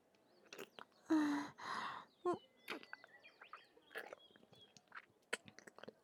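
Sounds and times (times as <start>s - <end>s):
deep kissing: 0.5s - 0.9s, 2.7s - 4.2s, 4.7s - 6.0s.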